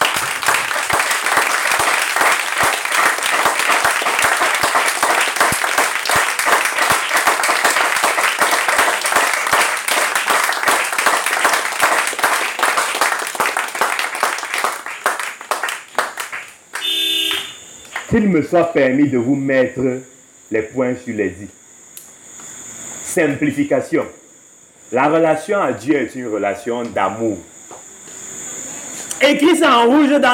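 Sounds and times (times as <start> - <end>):
audience applause: 0.0 - 18.1
speech: 18.2 - 21.6, 23.2 - 24.2, 24.9 - 27.5, 29.2 - 30.3.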